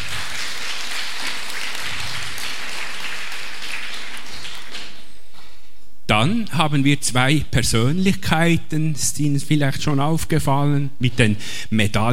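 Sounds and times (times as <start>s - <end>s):
audience applause: 0.0s - 5.0s
speech: 6.1s - 12.1s.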